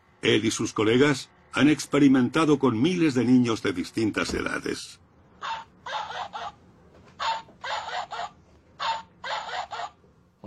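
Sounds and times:
speech: 0:00.2 - 0:05.0
dog: 0:05.4 - 0:06.6, 0:07.2 - 0:10.0.

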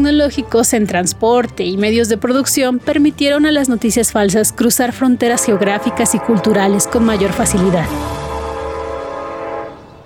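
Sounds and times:
speech: 0:00.0 - 0:08.3
train horn: 0:05.4 - 0:10.0.

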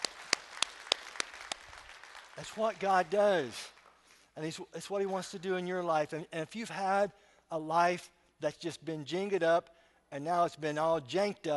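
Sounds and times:
audience applause: 0:00.0 - 0:04.2
speech: 0:02.4 - 0:03.8, 0:04.4 - 0:11.5.

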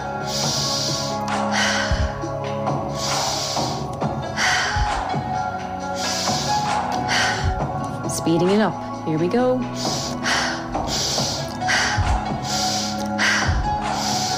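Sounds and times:
strong forceful inhales during a guided breathing exercise: 0:00.1 - 0:02.3, 0:02.9 - 0:05.1, 0:05.8 - 0:07.6, 0:09.8 - 0:14.3
speech: 0:08.2 - 0:09.9.

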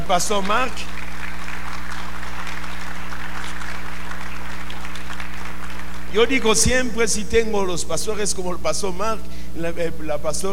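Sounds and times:
speech: 0:00.1 - 0:01.0, 0:06.1 - 0:10.5
loud audience applause for pastors: 0:00.2 - 0:06.3.

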